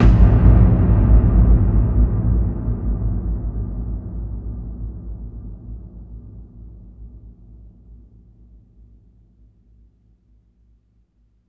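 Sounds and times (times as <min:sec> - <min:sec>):
big booming ambient drums: 0:00.0 - 0:03.8.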